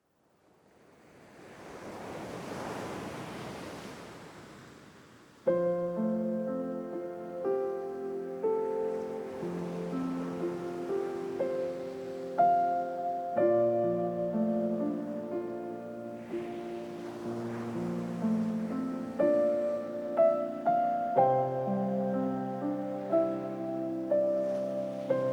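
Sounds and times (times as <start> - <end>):
piano: 5.4 - 25.3.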